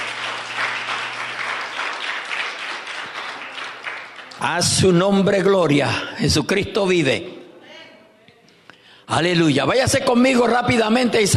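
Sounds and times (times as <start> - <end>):
audience applauding: 0.0 - 5.0
speech: 4.4 - 7.4, 9.1 - 11.3.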